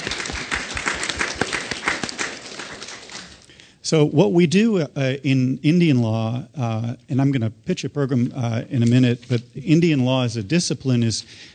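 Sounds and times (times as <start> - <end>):
crowd applauding: 0.0 - 3.5
speech: 3.9 - 11.5.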